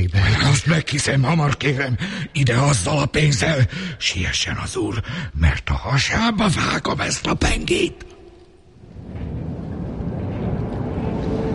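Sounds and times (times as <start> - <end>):
speech: 0.0 - 8.1
distant tram rumbling by: 8.8 - 11.5.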